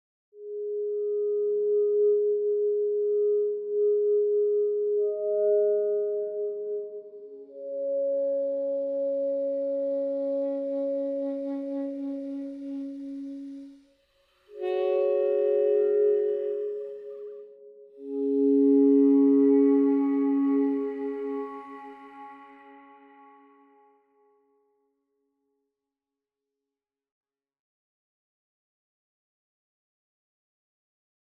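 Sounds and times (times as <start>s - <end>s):
synth pads: 0.4s - 13.7s, 14.5s - 23.8s
toy flute: 8.8s - 13.8s, 14.5s - 23.8s.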